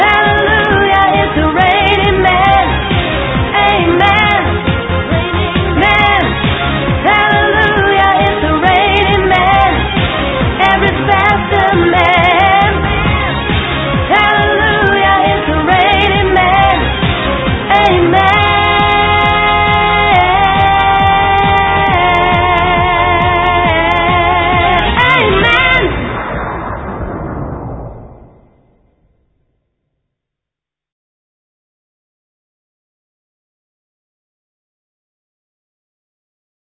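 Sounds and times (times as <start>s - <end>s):
soprano singing: 0.0s - 26.0s.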